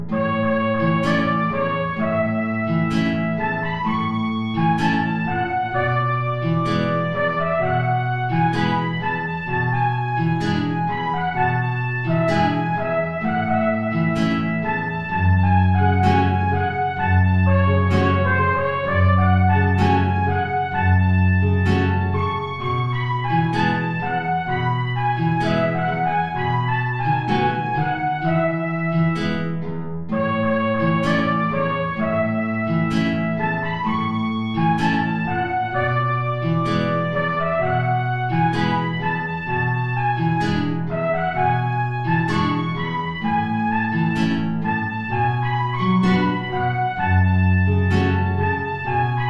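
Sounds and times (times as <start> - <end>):
tango play-along music without trumpet: 0.1 - 49.2.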